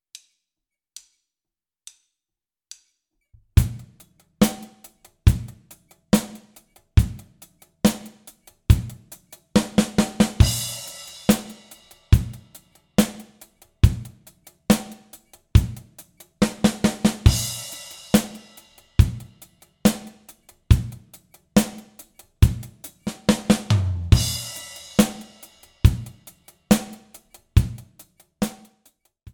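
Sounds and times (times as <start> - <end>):
one- and four-bar drum fills: 3.6 - 28.8.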